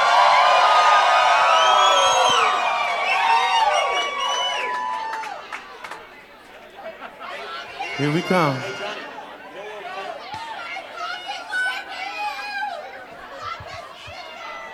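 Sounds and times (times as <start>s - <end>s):
audience cheering, whooping and whistling for a band: 0.0s - 5.5s
speech: 8.0s - 8.8s.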